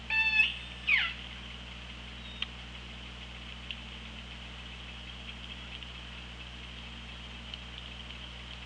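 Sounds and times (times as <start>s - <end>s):
orca calling underwater: 0.1s - 1.3s
faint clicks: 1.8s - 8.6s.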